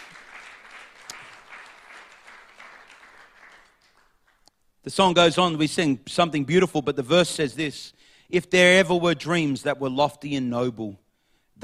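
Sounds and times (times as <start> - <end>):
audience clapping hands: 0.0 - 4.7
speech: 4.9 - 11.0.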